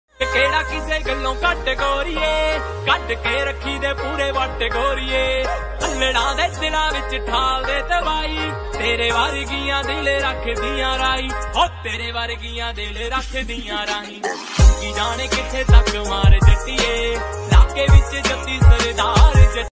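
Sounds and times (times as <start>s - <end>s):
Punjabi DJ music ringtone: 0.1s - 19.7s.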